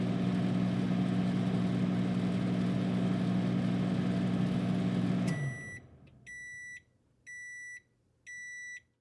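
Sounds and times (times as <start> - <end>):
household microwave running: 0.0 - 6.4
household microwave beep: 5.2 - 8.9.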